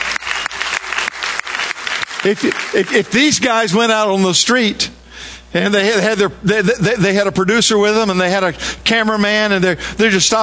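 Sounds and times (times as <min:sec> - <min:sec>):
audience applause: 0:00.0 - 0:03.3
speech: 0:02.2 - 0:10.4.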